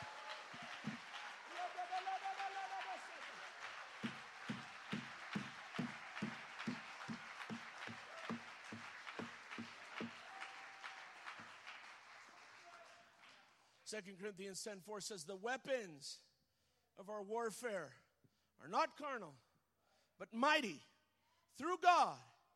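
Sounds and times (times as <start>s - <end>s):
audience applauding: 0.0s - 13.6s
speech: 13.9s - 16.3s, 17.0s - 18.0s, 18.6s - 19.5s, 20.2s - 20.9s, 21.6s - 22.3s.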